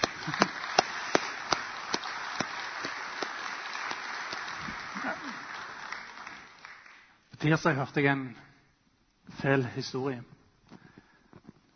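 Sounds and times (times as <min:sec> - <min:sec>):
audience applause: 0:00.0 - 0:07.2
speech: 0:07.4 - 0:08.5, 0:09.4 - 0:10.3.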